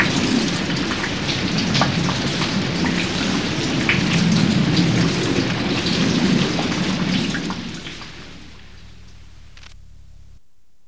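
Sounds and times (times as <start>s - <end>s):
slow rain: 0.0s - 10.4s.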